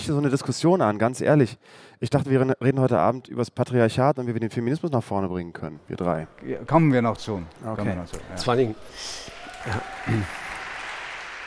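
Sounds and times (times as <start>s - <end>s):
speech: 0.0s - 10.4s
audience clapping: 8.2s - 11.4s.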